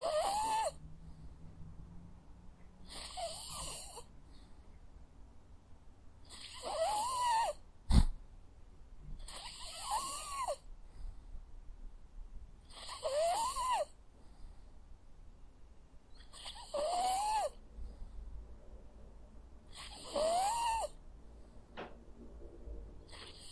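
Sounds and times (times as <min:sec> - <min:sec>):
dog snoring: 0:00.0 - 0:00.8, 0:02.8 - 0:04.1, 0:06.2 - 0:08.2, 0:09.2 - 0:10.6, 0:12.6 - 0:13.9, 0:16.2 - 0:17.6, 0:19.7 - 0:21.0, 0:23.1 - 0:23.4.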